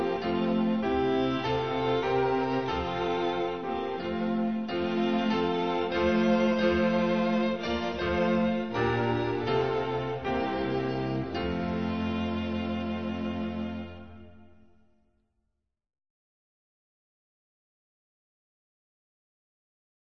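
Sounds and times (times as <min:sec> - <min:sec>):
instrumental hymn: 0:00.0 - 0:14.8.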